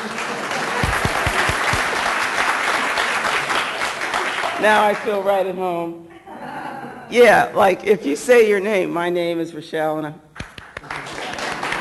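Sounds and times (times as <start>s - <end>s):
meeting audience applause: 0.0s - 5.1s, 10.5s - 11.7s
speech: 4.6s - 6.2s, 7.1s - 10.2s.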